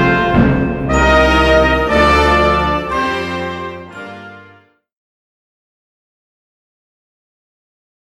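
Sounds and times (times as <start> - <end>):
fanfare: 0.0 - 4.7.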